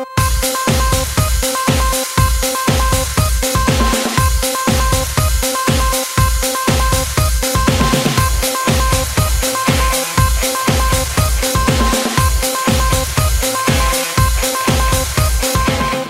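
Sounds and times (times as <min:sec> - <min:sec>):
techno rock music: 0:00.2 - 0:16.0.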